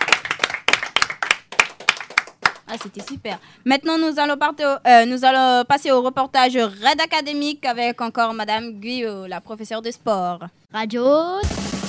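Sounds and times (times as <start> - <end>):
few hands clapping for a team's second-place district finish: 0.0 - 3.4
speech: 2.7 - 11.6.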